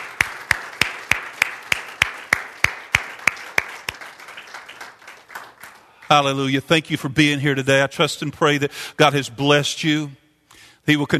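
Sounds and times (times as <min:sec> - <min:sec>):
audience hand clapping: 0:00.0 - 0:06.6
speech: 0:06.1 - 0:10.2, 0:10.8 - 0:11.1.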